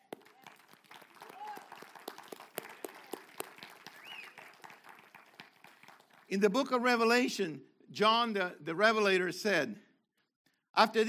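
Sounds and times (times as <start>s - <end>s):
people clapping: 0.0s - 6.8s
speech: 6.3s - 9.8s, 10.8s - 11.0s.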